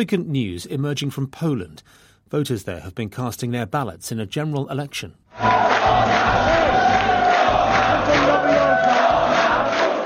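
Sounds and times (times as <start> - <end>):
speech: 0.0 - 6.8
crowd cheering at an opposition party headquarters in Poland after exit polls: 5.4 - 10.0.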